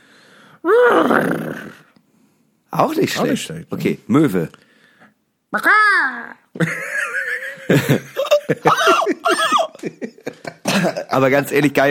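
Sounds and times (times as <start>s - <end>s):
voice imitating horse whinny: 0.6s - 1.9s
speech: 2.8s - 4.7s, 5.5s - 5.8s, 11.2s - 11.8s
laughter: 6.6s - 11.2s.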